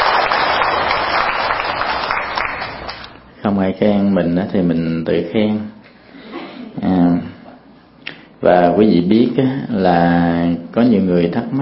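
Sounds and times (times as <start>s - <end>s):
Buddhist lay practitioners applauding at Quang Minh temple: 0.0s - 3.0s
speech: 3.5s - 5.8s, 8.4s - 11.5s.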